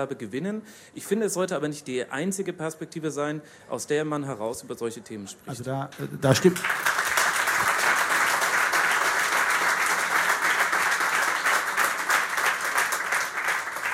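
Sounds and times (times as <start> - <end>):
speech: 0.0 - 6.9
audience applause: 6.3 - 13.9.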